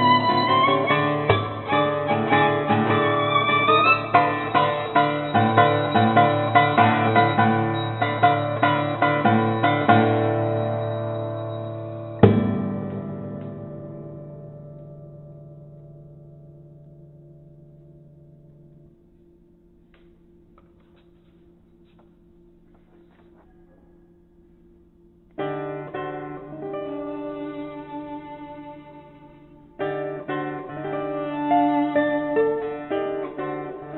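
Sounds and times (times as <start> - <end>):
violin playing a sonata: 0.0 - 14.9, 25.4 - 33.9
guitar playing a sonata: 0.0 - 19.0, 25.3 - 33.9.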